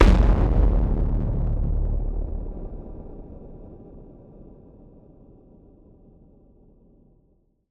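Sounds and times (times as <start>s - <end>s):
distorted impact boom: 0.0s - 4.5s.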